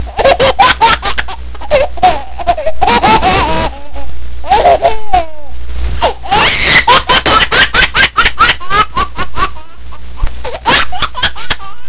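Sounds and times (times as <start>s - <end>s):
baby laughing: 0.0s - 11.8s.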